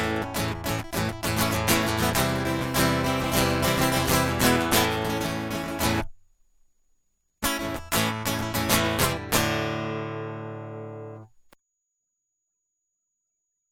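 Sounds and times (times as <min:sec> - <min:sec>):
guitar loop: 0:00.0 - 0:06.2, 0:07.4 - 0:11.5.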